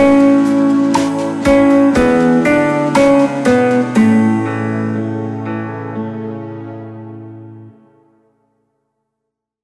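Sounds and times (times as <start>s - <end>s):
three guitars playing: 0.0s - 7.7s.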